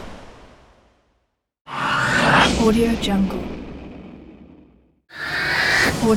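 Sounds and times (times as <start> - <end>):
whoosh: 1.7 - 6.0.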